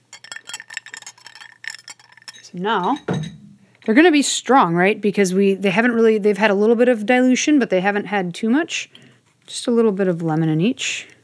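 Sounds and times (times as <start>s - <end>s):
ice cubes clinking into glass: 0.0s - 3.8s
speech: 2.5s - 11.2s.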